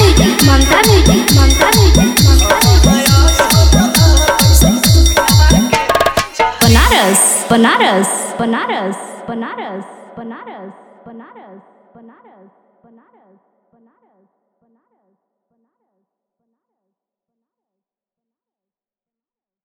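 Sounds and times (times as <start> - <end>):
Bhojpuri DJ remix song: 0.0 - 9.8.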